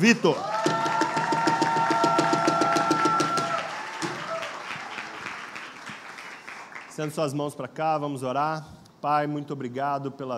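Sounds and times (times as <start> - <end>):
speech: 0.0 - 0.5, 7.0 - 10.3
audience applause: 0.0 - 7.2.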